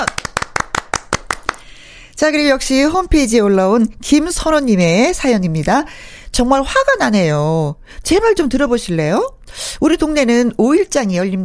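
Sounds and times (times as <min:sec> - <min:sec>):
hands clapping in encouragement: 0:00.0 - 0:01.7
speech: 0:02.2 - 0:11.4.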